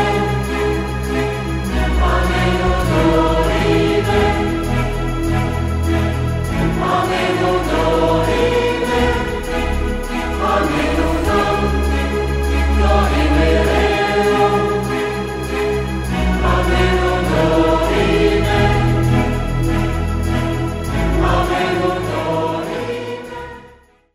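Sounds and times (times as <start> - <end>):
SATB choir singing harmonisations: 0.0 - 23.9.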